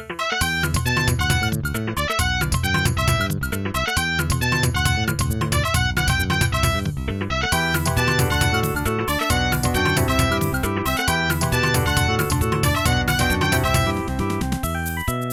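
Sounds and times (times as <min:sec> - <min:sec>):
Sony Ericsson ringtone: 0:00.2 - 0:06.8, 0:07.5 - 0:15.2.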